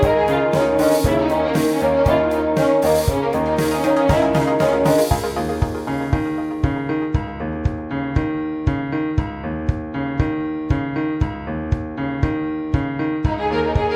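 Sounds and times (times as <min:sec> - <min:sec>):
classic blues music: 0:00.0 - 0:13.9.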